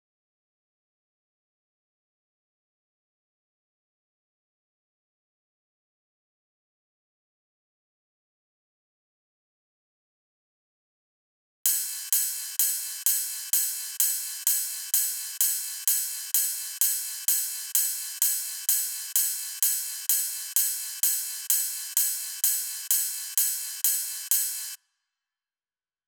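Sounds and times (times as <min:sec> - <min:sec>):
ride cymbal: 0:11.7 - 0:24.8.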